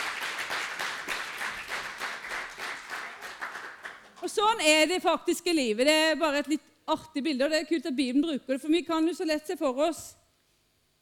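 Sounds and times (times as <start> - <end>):
audience applause: 0.0 - 4.2
speech: 4.2 - 10.2.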